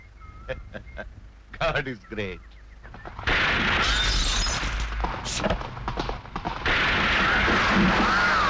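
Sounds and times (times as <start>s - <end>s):
speech: 0.5s - 2.6s, 5.3s - 6.0s
gunshots during shooting practice on a hilltop: 2.9s - 8.4s.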